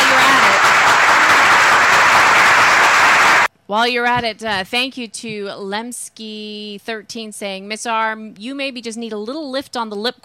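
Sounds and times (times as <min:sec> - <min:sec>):
roaring round of applause: 0:00.0 - 0:03.5
speech: 0:03.7 - 0:10.2.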